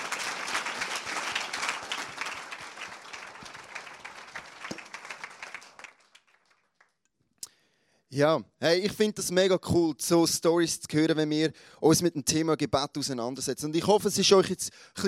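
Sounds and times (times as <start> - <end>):
applause: 0.0 - 7.0
speech: 8.2 - 15.0.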